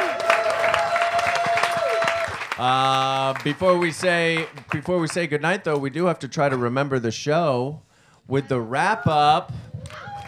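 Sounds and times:
audience applause: 0.0 - 4.9
speech: 2.6 - 10.0.

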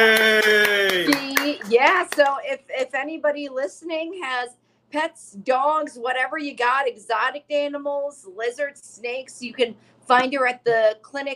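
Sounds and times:
long held vocal tone like a drawn-out cheer: 0.0 - 1.2
hands clapping in applause: 0.0 - 2.4
speech: 2.0 - 11.3.

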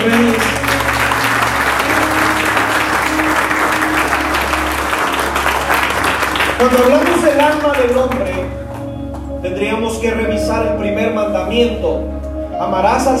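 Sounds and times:
audience applause: 0.0 - 8.9
speech: 6.6 - 8.6, 9.4 - 13.1.

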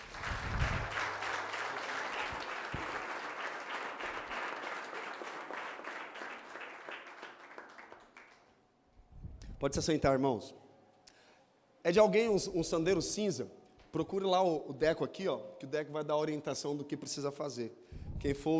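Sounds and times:
audience applause: 0.0 - 8.4
speech: 9.6 - 10.6, 11.9 - 18.5.

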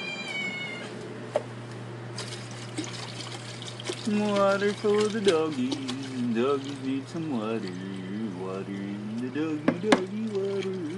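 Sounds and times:
cat meowing: 0.0 - 1.0
speech: 4.1 - 7.9, 8.5 - 10.8.

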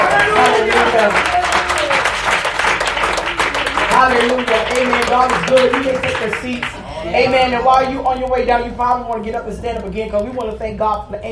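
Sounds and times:
audience clapping hands: 0.0 - 8.4
speech: 5.2 - 11.3.

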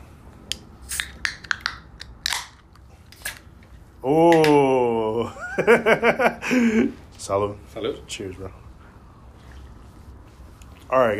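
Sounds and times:
beer can being cracked open: 0.9 - 3.5
speech: 4.0 - 4.6, 5.6 - 8.6, 10.9 - 11.1.

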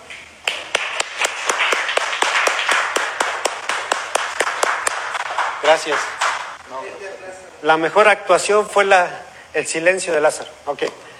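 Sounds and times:
rhythmic sharp claps: 0.1 - 6.6
audience applause: 0.5 - 6.6
speech: 5.7 - 7.0, 7.6 - 11.1.

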